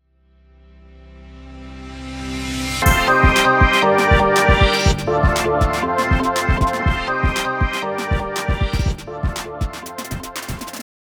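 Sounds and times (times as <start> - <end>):
intro music: 2.8 - 10.8.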